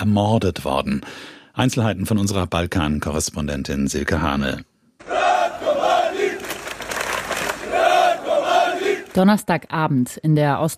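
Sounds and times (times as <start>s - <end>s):
speech: 0.0s - 4.7s, 9.2s - 10.7s
crowd of demonstrators chanting a name: 5.0s - 9.2s.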